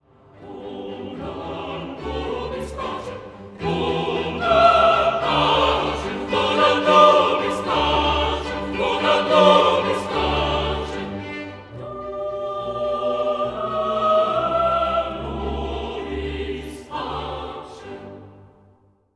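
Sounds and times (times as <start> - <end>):
chorus singing: 0.1 - 18.8.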